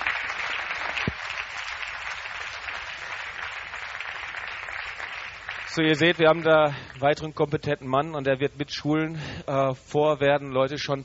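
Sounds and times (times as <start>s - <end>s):
audience applause: 0.0s - 7.0s
speech: 5.8s - 11.0s.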